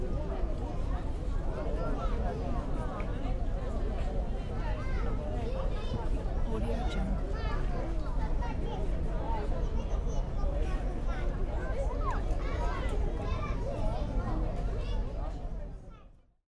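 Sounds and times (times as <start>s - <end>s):
crowd of tourists near Wawel Castle in Krakow: 0.0s - 16.4s.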